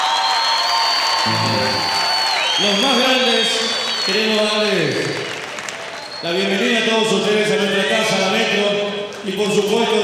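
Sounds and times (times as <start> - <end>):
crowd applause: 0.0 - 4.1
crowd cheering: 0.0 - 4.6
speech: 2.6 - 5.2, 6.2 - 10.0.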